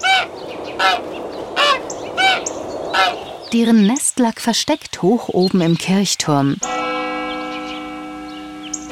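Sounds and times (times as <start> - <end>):
magpies' loud chattering calls: 0.0 - 8.8
speech: 0.8 - 1.1, 3.5 - 6.8.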